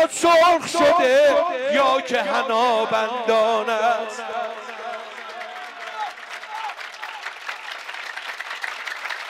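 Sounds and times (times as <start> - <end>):
speech: 0.0 - 4.8
crowd clapping at a celebration of Imam Ali's birth night: 4.2 - 9.2.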